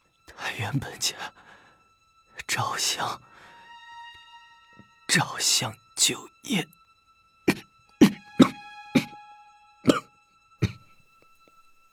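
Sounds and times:
speech: 0:00.5 - 0:01.4, 0:02.5 - 0:03.3, 0:05.1 - 0:06.8
person coughing violently: 0:07.5 - 0:09.2, 0:09.9 - 0:10.9.

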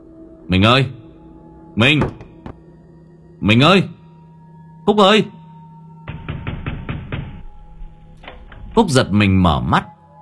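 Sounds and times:
speech: 0:00.5 - 0:01.0, 0:01.8 - 0:02.2, 0:03.4 - 0:04.0, 0:04.8 - 0:05.4, 0:08.8 - 0:09.9
banging on a door: 0:02.0 - 0:02.6, 0:06.1 - 0:08.6.

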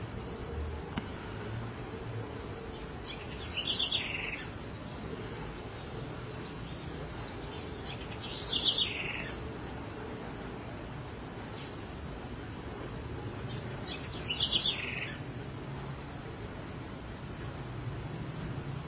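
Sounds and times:
continuous low-pitched background noise: 0:00.0 - 0:18.8
house wren song: 0:02.6 - 0:09.4, 0:13.3 - 0:15.3.

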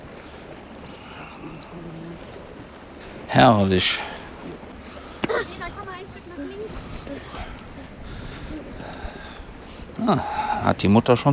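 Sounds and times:
wind blowing: 0:00.0 - 0:11.3
speech: 0:01.6 - 0:02.4, 0:03.3 - 0:04.1, 0:10.1 - 0:11.3.

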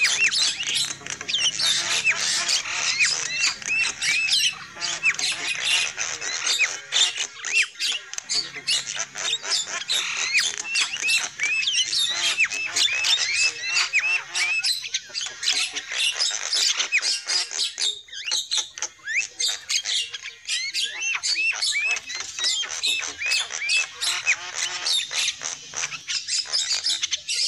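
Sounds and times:
flock of lovebirds chirping and squawking: 0:00.0 - 0:27.4.

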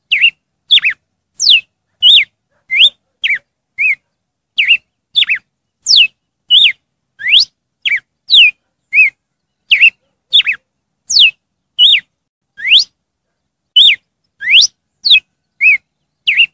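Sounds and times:
red-cowled cardinal song: 0:00.1 - 0:04.0, 0:04.6 - 0:13.0, 0:13.8 - 0:16.5.

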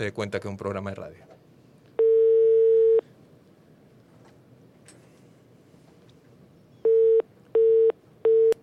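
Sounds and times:
speech: 0:00.0 - 0:01.4
telephone call tones as a number is dialed and rings out: 0:02.0 - 0:03.0, 0:06.8 - 0:08.6.

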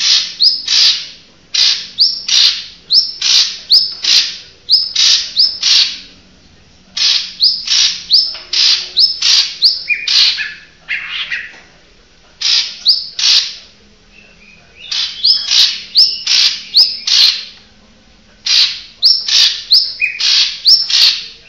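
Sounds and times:
Oriental magpie-robin singing harsh buzzy notes and whistles: 0:00.0 - 0:11.5, 0:12.4 - 0:17.6, 0:18.4 - 0:21.4.

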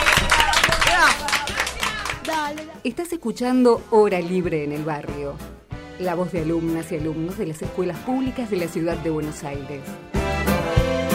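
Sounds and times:
applause: 0:00.0 - 0:02.8
speech: 0:02.5 - 0:10.1.

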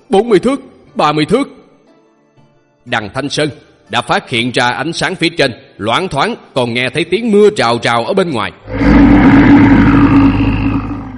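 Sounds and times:
speech: 0:00.1 - 0:01.6, 0:02.8 - 0:09.8
deep furious monster-like roar: 0:08.6 - 0:11.1.

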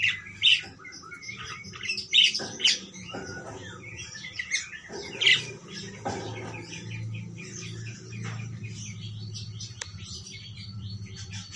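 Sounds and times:
parakeet squawking: 0:00.0 - 0:08.0
low rumble: 0:02.8 - 0:11.3.

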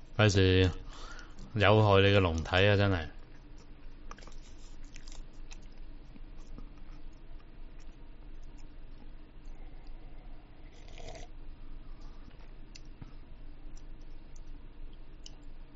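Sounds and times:
speech: 0:00.2 - 0:03.2
person chewing food close to the microphone: 0:03.3 - 0:11.3, 0:11.9 - 0:15.7.

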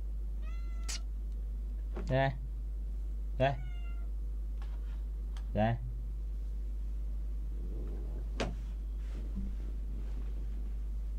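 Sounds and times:
steady low hum: 0:00.0 - 0:11.1
cat meowing: 0:00.4 - 0:01.0, 0:03.5 - 0:04.1
speech: 0:02.1 - 0:02.4, 0:03.4 - 0:03.7, 0:05.5 - 0:05.9.

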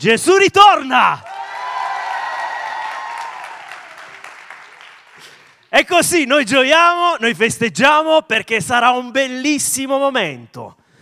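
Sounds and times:
speech: 0:00.0 - 0:01.3, 0:05.8 - 0:10.8
crowd applauding: 0:01.2 - 0:05.8.

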